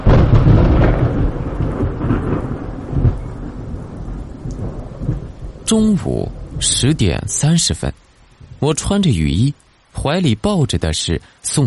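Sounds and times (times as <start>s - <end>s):
deep thunder rumbling: 0.0s - 9.1s
heavy rain: 0.0s - 11.6s
speech: 5.7s - 11.6s.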